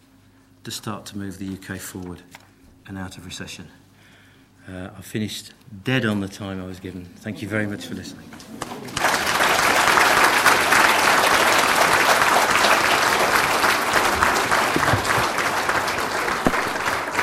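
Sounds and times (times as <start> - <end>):
speech: 0.6 - 3.8, 4.7 - 9.1
audience applause after a presentation: 8.3 - 17.2.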